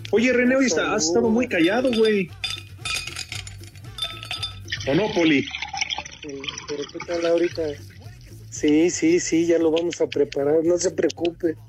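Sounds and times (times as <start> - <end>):
speech: 0.1 - 2.5, 4.8 - 5.6, 6.2 - 7.9, 8.5 - 11.6
ice cubes clinking against a glass: 1.5 - 8.2.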